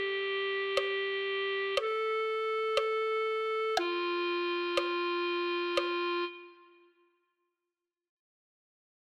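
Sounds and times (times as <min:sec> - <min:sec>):
clarinet: 0:00.0 - 0:07.1.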